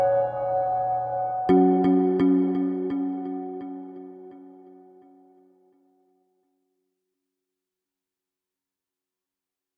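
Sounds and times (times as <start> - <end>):
groove music drops: 0.0 - 5.1.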